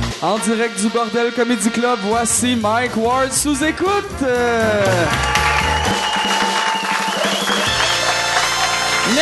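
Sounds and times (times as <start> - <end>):
speech: 0.2 - 6.5
audience applause: 4.8 - 9.2.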